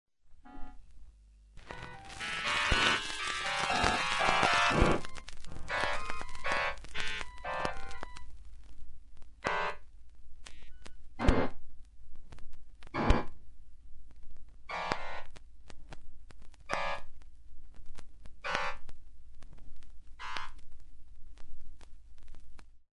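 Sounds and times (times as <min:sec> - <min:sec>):
orchestra on a vinyl record: 0:00.3 - 0:22.8.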